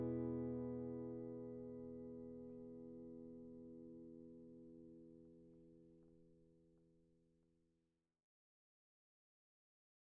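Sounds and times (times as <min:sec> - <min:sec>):
raw guitar strumming: 0:00.0 - 0:03.2.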